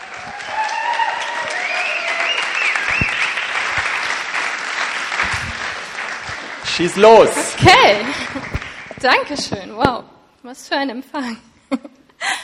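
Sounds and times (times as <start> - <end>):
warm applause: 0.0 - 9.4
speech: 6.8 - 11.9.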